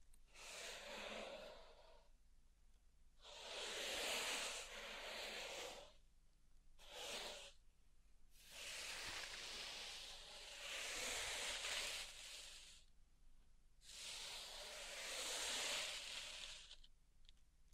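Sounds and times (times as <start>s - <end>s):
pink salt raked or poured in a zen garden: 0.4s - 1.9s, 3.2s - 6.0s, 6.8s - 7.5s, 8.4s - 12.8s, 13.8s - 16.9s.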